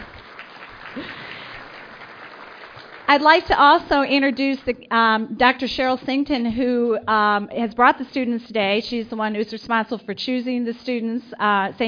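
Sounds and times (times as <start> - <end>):
audience applause: 0.0 - 3.6
speech: 1.0 - 1.2, 3.1 - 11.8.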